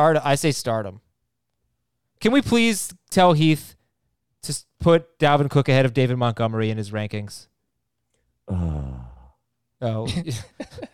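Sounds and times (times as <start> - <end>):
speech: 0.0 - 1.0, 2.2 - 3.8, 4.4 - 7.5, 8.5 - 9.1, 9.8 - 10.9
long voiced sigh sound effect: 8.5 - 9.4.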